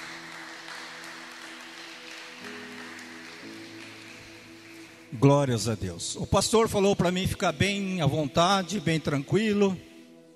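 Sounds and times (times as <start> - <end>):
audience applause: 0.0 - 5.1
speech: 5.1 - 9.9.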